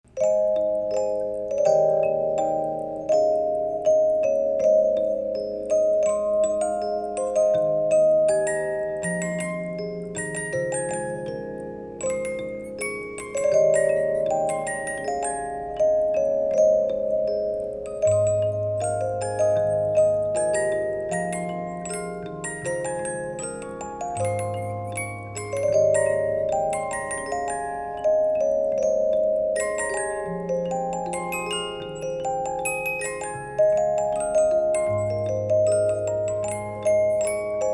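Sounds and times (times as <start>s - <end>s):
Sankyo 50-note music box playing: 0.1s - 37.7s.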